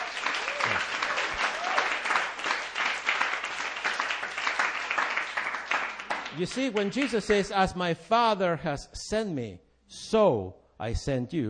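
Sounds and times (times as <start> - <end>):
audience clapping: 0.0 - 7.6
speech: 6.4 - 11.4.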